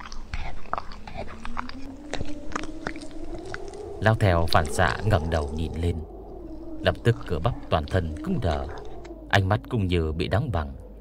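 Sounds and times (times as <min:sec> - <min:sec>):
wet smacking chewing of meat behind a broken stone stele: 0:00.0 - 0:09.2
low steady hum: 0:00.0 - 0:11.0
speech: 0:04.0 - 0:06.1, 0:06.8 - 0:08.8, 0:09.4 - 0:10.8.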